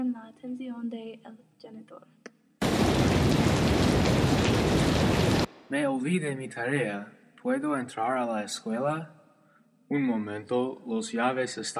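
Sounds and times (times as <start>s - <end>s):
speech: 0.1s - 3.4s, 5.7s - 9.2s, 9.9s - 11.7s
stormy rain outside: 2.6s - 5.5s.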